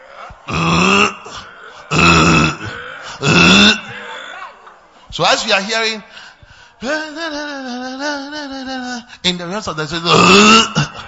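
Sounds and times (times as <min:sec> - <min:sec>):
person imitating frog croaking: 0:00.3 - 0:04.6, 0:10.1 - 0:10.9
speech: 0:05.2 - 0:06.2, 0:06.8 - 0:11.0.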